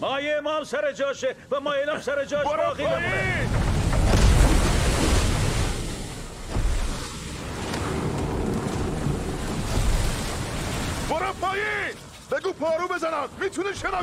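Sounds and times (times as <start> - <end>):
speech: 0.1 - 3.7, 11.2 - 14.0
ocean waves surging and washing around a ship at sea: 2.0 - 14.0
wind buffeting the microphone: 2.5 - 11.1.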